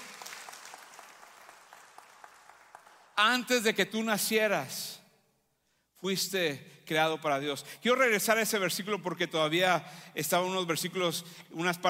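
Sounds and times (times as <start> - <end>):
strong applause: 0.0 - 3.4
speech: 3.2 - 5.0, 6.0 - 11.8.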